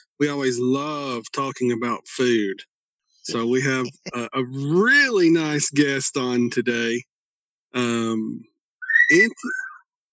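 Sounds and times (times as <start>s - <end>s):
speech: 0.2s - 7.1s, 7.7s - 8.5s, 9.1s - 9.7s
birds chirping: 8.8s - 9.9s.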